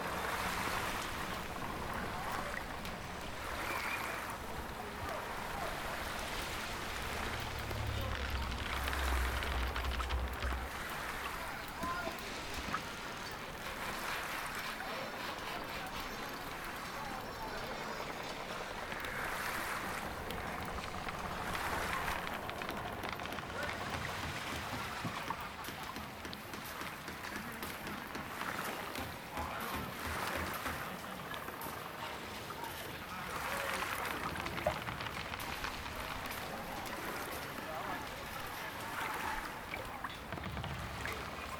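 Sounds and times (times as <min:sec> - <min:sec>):
fishing village ambience: 0:00.0 - 0:41.5.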